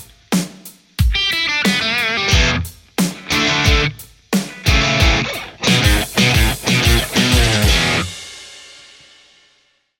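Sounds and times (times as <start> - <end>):
electric guitar through an overdriven amplifier: 1.1 - 8.2.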